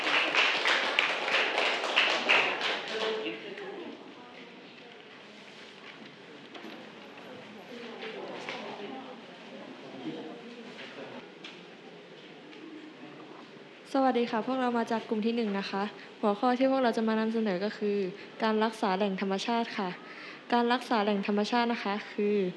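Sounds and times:
audience clapping for a group: 0.0s - 3.6s
speech: 14.0s - 22.5s.

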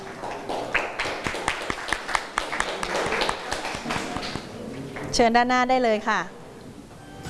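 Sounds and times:
students clapping: 0.0s - 5.1s
speech: 5.2s - 6.4s.

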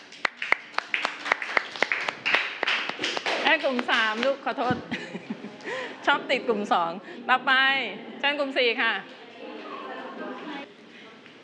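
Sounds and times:
small group clapping hands: 0.0s - 4.8s
speech: 3.5s - 9.2s
laughter: 4.8s - 6.1s, 9.4s - 10.7s.

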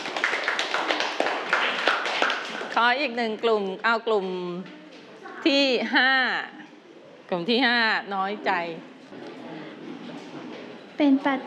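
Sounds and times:
Thai schoolchildren clapping in a classroom: 0.0s - 2.9s
speech: 2.8s - 4.8s, 5.4s - 6.6s, 7.3s - 9.3s, 11.0s - 11.4s.

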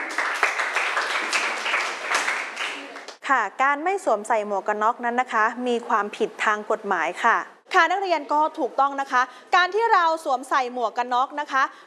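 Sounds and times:
students clapping: 0.0s - 3.2s
speech: 3.3s - 11.8s.

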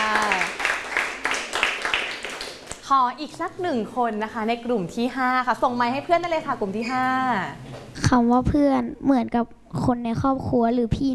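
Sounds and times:
people clapping for a classmate: 0.0s - 2.9s
speech: 2.9s - 11.1s.

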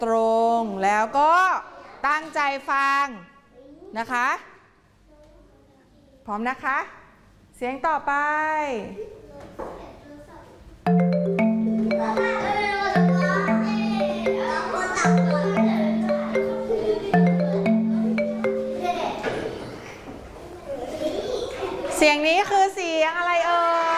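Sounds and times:
speech: 0.0s - 3.3s, 3.9s - 4.5s, 6.3s - 7.0s, 7.6s - 9.7s, 12.0s - 12.6s, 22.0s - 23.8s
telephone melodic ringtone: 10.9s - 19.2s.

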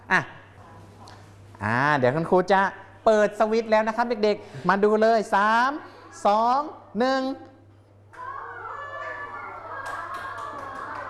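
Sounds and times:
speech: 0.1s - 0.3s, 1.6s - 7.5s
children clapping hands: 9.4s - 11.0s.

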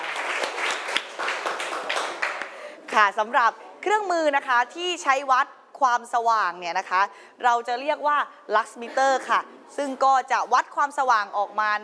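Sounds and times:
class applauding a group's representative: 0.0s - 2.7s
speech: 3.0s - 11.8s.

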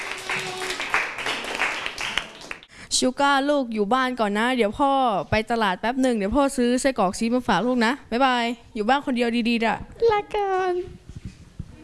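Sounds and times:
crowd applause for a group: 0.0s - 2.7s
speech: 3.0s - 11.0s.

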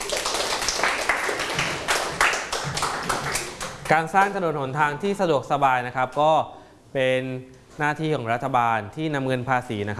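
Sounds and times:
room of children clapping: 0.0s - 4.0s
speech: 3.9s - 9.9s.

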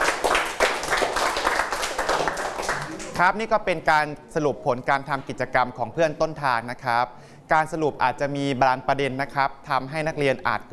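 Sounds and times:
students applauding: 0.0s - 3.2s
speech: 3.2s - 10.7s.

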